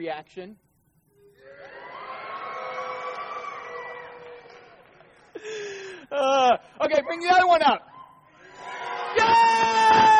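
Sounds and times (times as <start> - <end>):
speech: 0.0 - 0.7, 5.4 - 7.9
studio audience cheering during a reaction segment: 1.4 - 4.9, 8.4 - 10.1.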